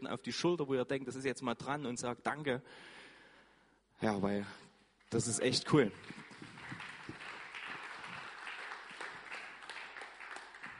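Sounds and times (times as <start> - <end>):
speech: 0.0 - 3.0, 4.0 - 6.3
crowd applauding: 5.1 - 10.7.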